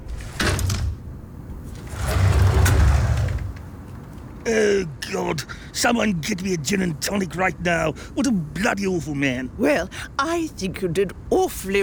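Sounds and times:
airplane noise: 0.0s - 4.4s
speech: 4.5s - 11.8s.

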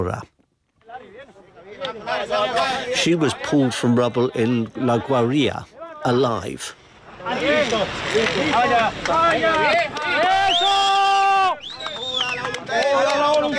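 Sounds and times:
speech: 0.0s - 0.3s, 2.2s - 11.0s
crowd cheering and shouting at earthquake rescue: 7.2s - 13.5s.

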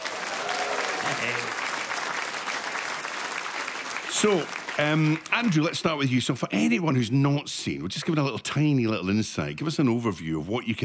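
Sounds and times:
audience clapping welcoming comedy performers at the Edinburgh Fringe: 0.0s - 6.2s
speech: 1.1s - 1.7s, 4.2s - 10.8s.

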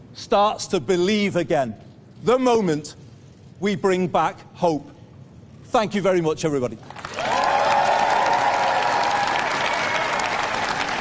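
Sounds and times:
speech: 0.2s - 3.0s, 3.6s - 4.9s, 5.7s - 7.0s
audience applause after a speech: 7.0s - 10.9s
faint cheers: 7.1s - 10.9s.

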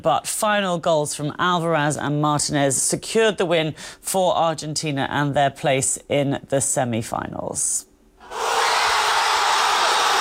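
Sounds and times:
speech: 0.0s - 8.4s
fans cheering at the final whistle: 8.2s - 10.2s.

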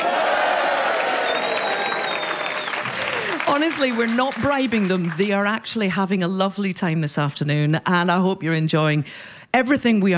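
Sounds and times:
live audience applauding in the Spiegel tent: 0.0s - 5.3s
speech: 3.6s - 10.1s.

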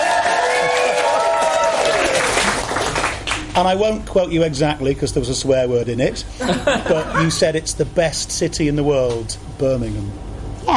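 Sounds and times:
pub crowd applauding: 0.0s - 3.5s
speech: 3.6s - 10.7s
laughter: 6.4s - 7.6s.

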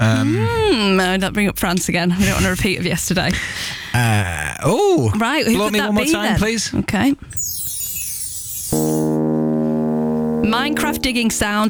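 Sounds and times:
speech: 0.0s - 7.4s, 10.5s - 11.6s
ship fog horn blaring: 8.8s - 11.4s.

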